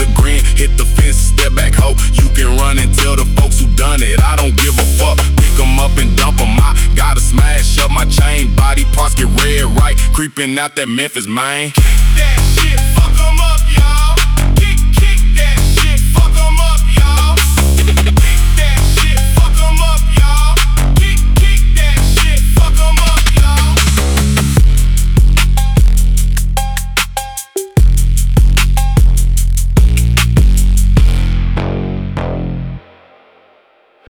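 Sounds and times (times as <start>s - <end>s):
phonk music: 0.0s - 33.2s.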